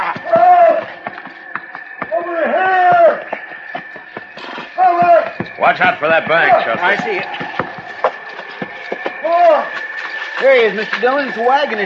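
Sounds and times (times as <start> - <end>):
man yelling from distance: 0.2 - 0.9, 2.1 - 3.3, 4.8 - 5.3
speech: 5.6 - 7.5, 10.4 - 11.8.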